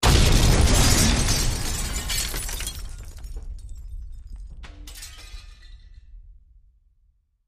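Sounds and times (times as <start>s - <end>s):
explosion: 0.0s - 4.6s
glass debris: 0.0s - 6.0s.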